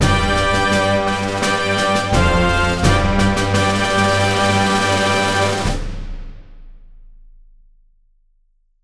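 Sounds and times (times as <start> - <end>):
fanfare: 0.0 - 5.9.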